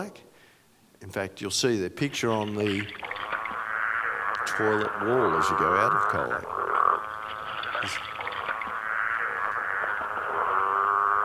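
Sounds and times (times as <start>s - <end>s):
speech: 1.0s - 3.1s, 4.6s - 6.6s, 7.8s - 8.0s
growling grass frogs chorus: 2.2s - 11.2s.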